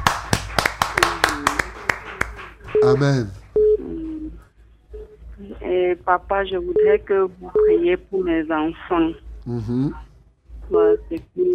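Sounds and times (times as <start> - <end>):
church congregation hand claps: 0.0 - 3.5
speech: 2.8 - 3.4, 5.8 - 10.0, 10.7 - 11.5.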